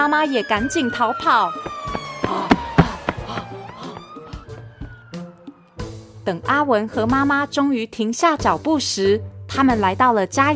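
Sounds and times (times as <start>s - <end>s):
speech: 0.0s - 1.8s, 6.3s - 10.5s
fire engine siren: 0.0s - 6.0s
knocks and clattering thumps: 1.6s - 4.9s.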